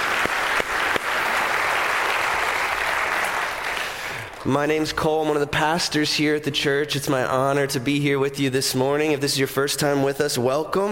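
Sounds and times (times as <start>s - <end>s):
round of applause: 0.0s - 4.5s
speech: 4.4s - 10.8s.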